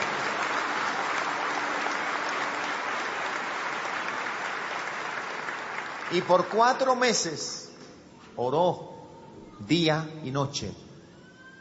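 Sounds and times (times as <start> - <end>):
audience applauding: 0.0 - 7.6
speech: 6.1 - 7.6, 8.4 - 8.9, 9.6 - 10.8.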